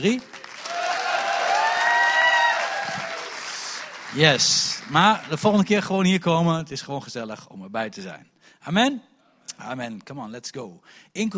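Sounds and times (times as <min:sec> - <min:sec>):
speech: 0:00.0 - 0:00.3, 0:04.1 - 0:11.3
crowd shouts and whoops: 0:00.0 - 0:05.6
audience applauding: 0:00.0 - 0:05.8.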